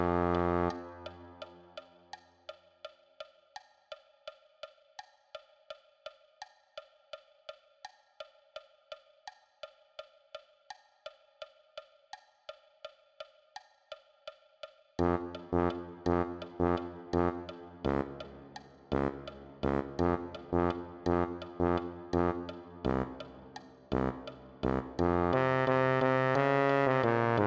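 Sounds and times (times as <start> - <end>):
tuba: 0.0 - 2.0, 15.0 - 27.4.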